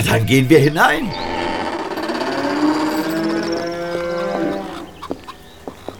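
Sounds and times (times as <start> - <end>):
speech: 0.1 - 1.4
cows mooing in a cowshed: 1.1 - 5.1.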